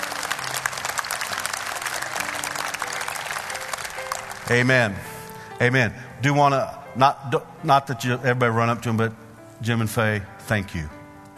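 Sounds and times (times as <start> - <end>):
audience hand clapping: 0.0 - 5.3
speech: 4.5 - 11.3.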